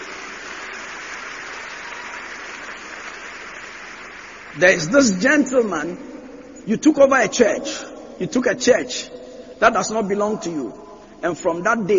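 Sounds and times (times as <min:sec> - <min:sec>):
audience clapping: 0:00.0 - 0:05.4
speech: 0:04.6 - 0:11.9.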